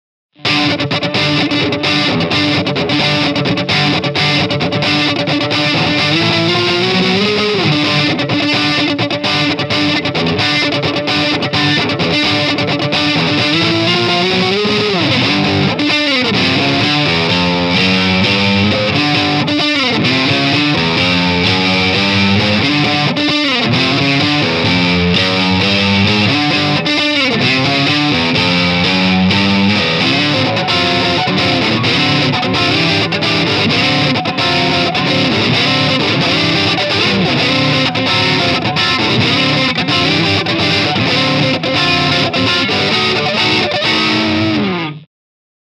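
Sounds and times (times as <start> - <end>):
funk music: 0.4 - 45.0.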